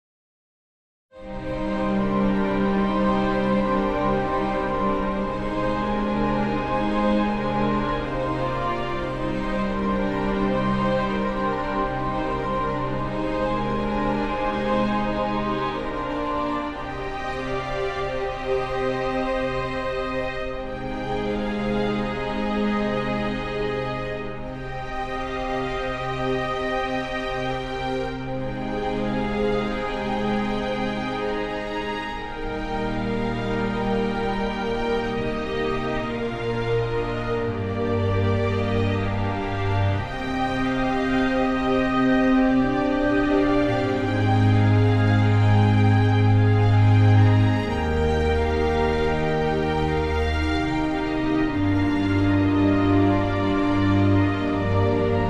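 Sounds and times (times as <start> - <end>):
instrumental music without harp: 1.2 - 55.2.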